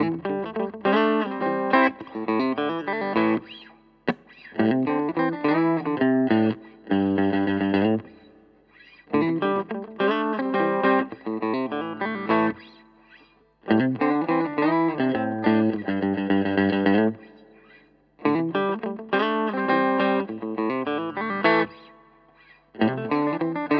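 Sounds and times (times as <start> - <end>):
electric guitar through Maybach clean amplifier: 0.0 - 23.7.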